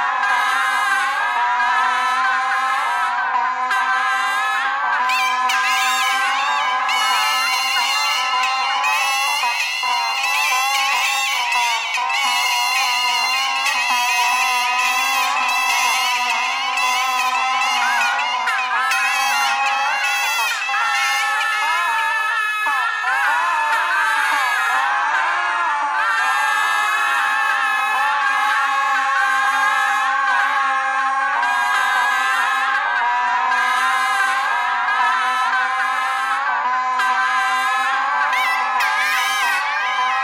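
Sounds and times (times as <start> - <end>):
bagpipe playing: 0.0 - 40.2
geese honking: 3.6 - 22.0.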